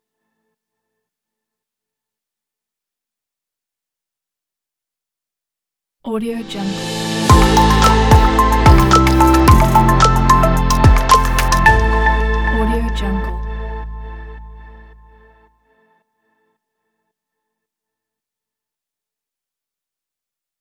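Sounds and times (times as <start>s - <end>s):
space tech logo sound: 6.8s - 14.2s.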